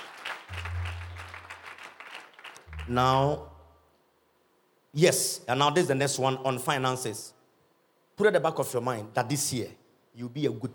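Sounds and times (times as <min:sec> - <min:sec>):
audience clapping hands: 0:00.0 - 0:03.6
speech: 0:02.9 - 0:03.5, 0:05.0 - 0:07.4, 0:08.2 - 0:10.7.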